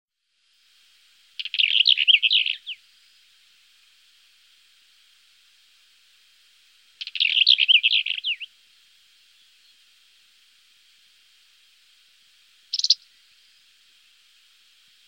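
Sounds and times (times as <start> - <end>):
Black-eared wheatear singing a rasping note and scratchy warble: 1.4 - 3.2, 7.0 - 8.5, 12.7 - 14.1.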